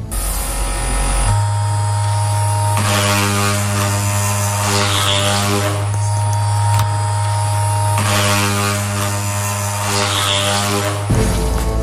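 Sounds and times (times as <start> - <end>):
sex toy vibrator buzzing pressed against a table: 0.0 - 11.7.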